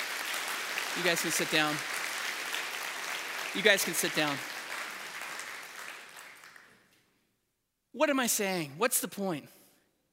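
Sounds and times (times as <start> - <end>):
audience applause: 0.0 - 6.8
speech: 1.0 - 1.9, 3.6 - 4.5, 7.9 - 9.6.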